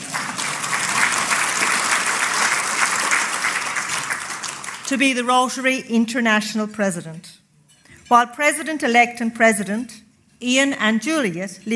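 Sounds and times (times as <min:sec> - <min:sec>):
audience applause: 0:00.0 - 0:04.9
speech: 0:04.9 - 0:07.4, 0:08.1 - 0:11.7.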